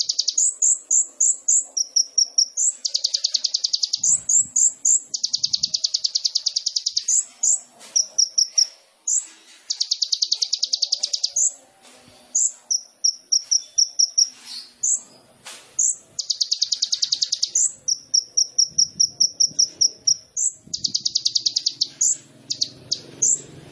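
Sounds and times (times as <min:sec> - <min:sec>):
sunbird singing: 0:00.0 - 0:11.6, 0:12.3 - 0:23.7.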